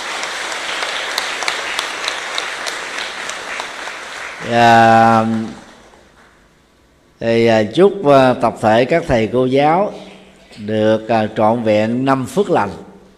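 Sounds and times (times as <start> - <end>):
applause: 0.0 - 6.4
speech: 4.5 - 5.6, 7.2 - 10.0, 10.6 - 12.9.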